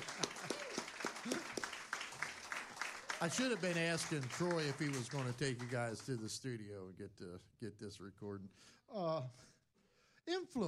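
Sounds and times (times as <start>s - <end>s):
audience applause for the band: 0.0s - 6.3s
speech: 3.2s - 9.5s, 10.3s - 10.6s.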